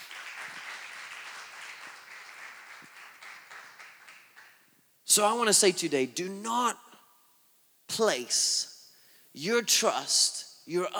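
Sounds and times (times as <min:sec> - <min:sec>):
audience applause: 0:00.0 - 0:04.7
speech: 0:05.2 - 0:06.8, 0:08.0 - 0:08.7, 0:09.4 - 0:10.9.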